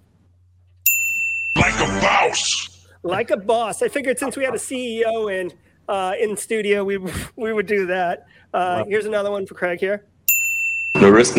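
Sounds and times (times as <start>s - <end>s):
game show buzzer ding: 1.0s - 2.4s
speech: 1.8s - 10.1s, 11.0s - 11.3s.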